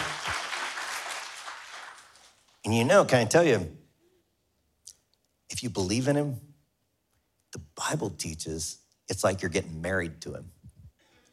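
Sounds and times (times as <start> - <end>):
audience clapping: 0.0 - 2.6
speech: 2.7 - 3.8, 5.6 - 6.5, 7.6 - 10.6.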